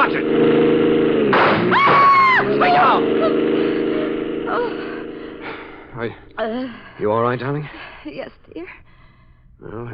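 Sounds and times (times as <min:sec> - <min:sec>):
car engine roaring racing down the street: 0:00.0 - 0:06.7
speech: 0:06.0 - 0:08.8, 0:09.6 - 0:09.9.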